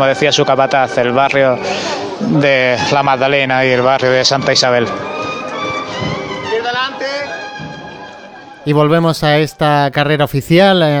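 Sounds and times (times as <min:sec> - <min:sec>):
speech: 0:00.0 - 0:05.4, 0:08.6 - 0:10.9
crowd voices at Holy Week procession: 0:00.0 - 0:09.5
shuffling footsteps: 0:04.9 - 0:06.7.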